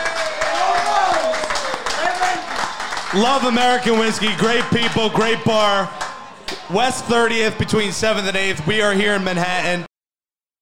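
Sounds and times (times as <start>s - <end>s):
people whooping and cheering: 0.0s - 2.8s
audience applause: 0.0s - 5.8s
speech: 3.1s - 6.0s, 6.7s - 9.9s.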